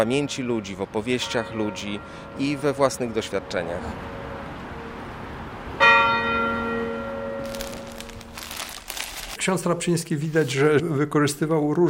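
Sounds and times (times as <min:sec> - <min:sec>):
speech: 0:00.0 - 0:04.2, 0:09.5 - 0:11.8
church bells ringing: 0:00.4 - 0:03.5, 0:05.8 - 0:08.2.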